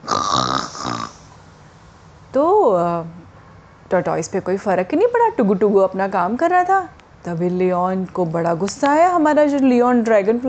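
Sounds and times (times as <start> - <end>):
person imitating a lion's roar: 0.0 - 1.3
speech: 2.3 - 3.2, 3.9 - 10.4.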